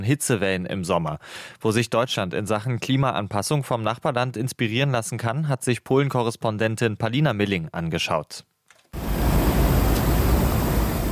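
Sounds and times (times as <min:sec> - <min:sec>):
speech: 0:00.0 - 0:08.5
sprinkler spraying fine water droplets: 0:09.0 - 0:11.0.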